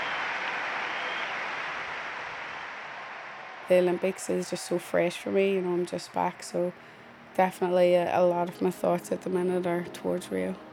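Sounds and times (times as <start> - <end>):
arena crowd applause: 0.0 - 7.0
speech: 3.7 - 10.7.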